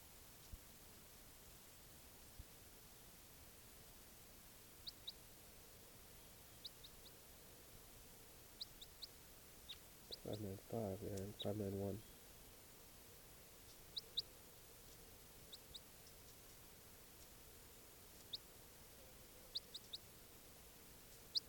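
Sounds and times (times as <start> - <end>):
steady hiss: 0.0 - 21.4
birds chirping: 6.1 - 7.2, 8.5 - 12.3, 13.6 - 16.6, 18.0 - 20.2, 21.1 - 21.4
speech: 10.3 - 12.1.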